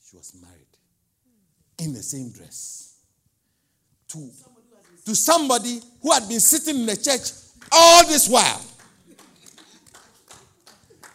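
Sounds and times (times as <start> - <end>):
speech: 0.1 - 0.9, 1.8 - 2.9, 4.1 - 8.7
single person clapping: 8.7 - 11.1.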